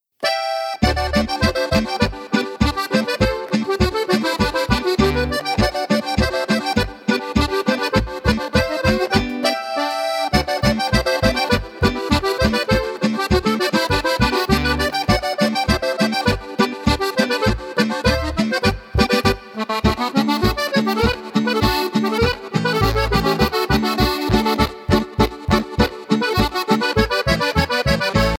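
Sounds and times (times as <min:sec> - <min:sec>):
accordion: 0:00.2 - 0:28.3.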